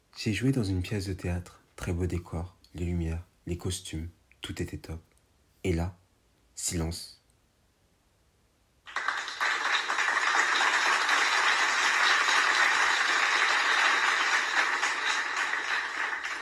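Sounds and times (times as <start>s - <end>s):
speech: 0.2s - 6.0s, 6.6s - 7.2s
audience applause: 8.9s - 16.4s.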